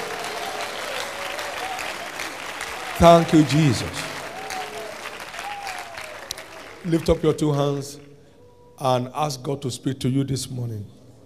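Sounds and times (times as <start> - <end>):
church congregation applause: 0.0 - 8.1
speech: 3.0 - 4.1, 6.8 - 8.1, 8.8 - 11.0.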